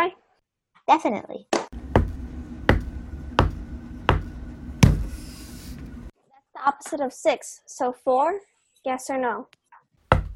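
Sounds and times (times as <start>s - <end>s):
speech: 0.9s - 1.8s, 6.6s - 9.6s
knocking: 1.8s - 5.2s.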